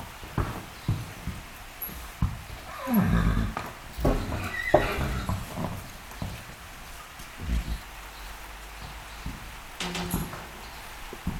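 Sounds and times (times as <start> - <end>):
hooves shuffling and knocking: 0.0 - 11.3
horse giving a low breathy vocal sound: 2.6 - 5.8.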